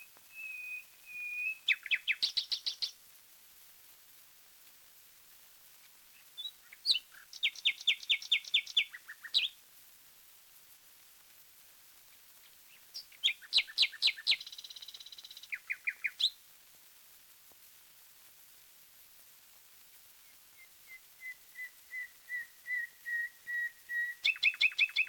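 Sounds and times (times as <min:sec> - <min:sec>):
common nightingale singing: 0:00.0 - 0:03.0, 0:06.2 - 0:09.6, 0:12.4 - 0:16.4, 0:20.2 - 0:25.0.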